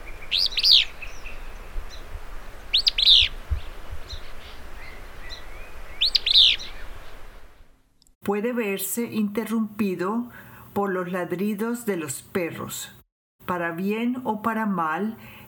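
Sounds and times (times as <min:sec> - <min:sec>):
willow flycatcher singing: 0:00.0 - 0:07.3
speech: 0:08.3 - 0:15.4.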